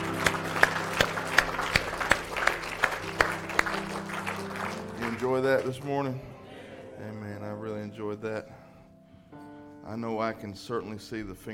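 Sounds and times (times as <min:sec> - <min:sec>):
audience clapping in praise: 0:00.0 - 0:06.2
speech: 0:05.4 - 0:06.3, 0:07.0 - 0:08.6, 0:09.9 - 0:11.5.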